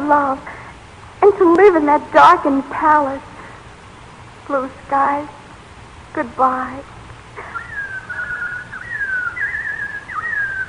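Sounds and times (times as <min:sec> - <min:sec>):
hiss: 0:00.0 - 0:10.6
speech: 0:00.1 - 0:00.6, 0:01.2 - 0:03.3, 0:04.5 - 0:05.4, 0:06.2 - 0:06.9
robin singing: 0:07.4 - 0:10.6.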